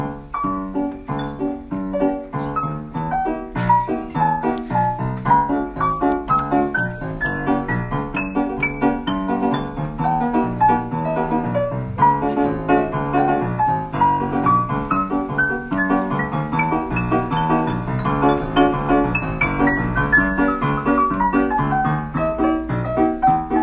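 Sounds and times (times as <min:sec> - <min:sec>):
improvised music: 0:00.0 - 0:23.6.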